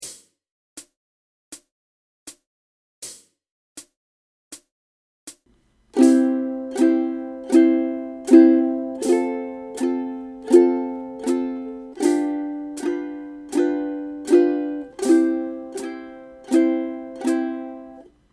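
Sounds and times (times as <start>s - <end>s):
guitar strumming: 6.0s - 18.2s.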